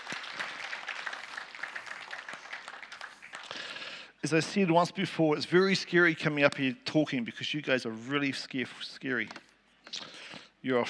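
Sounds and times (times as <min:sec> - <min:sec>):
audience applause: 0:00.0 - 0:04.0
speech: 0:04.2 - 0:09.4, 0:10.6 - 0:10.8.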